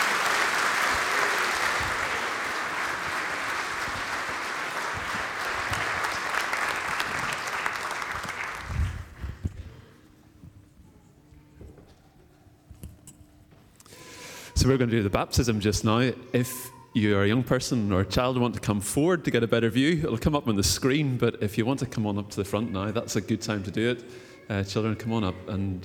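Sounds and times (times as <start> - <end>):
audience applauding and cheering: 0.0 - 9.5
speech: 14.6 - 25.8.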